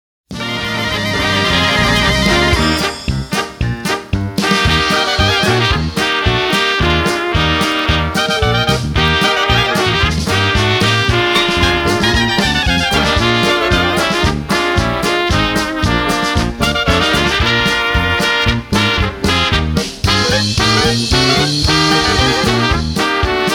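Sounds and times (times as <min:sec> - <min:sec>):
polka music: 0:00.3 - 0:23.5.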